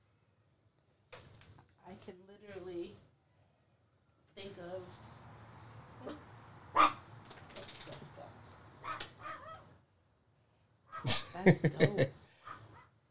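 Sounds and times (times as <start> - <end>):
female dog whimpering, yelping and barking: 8.8 - 9.7
laughter: 11.0 - 12.1.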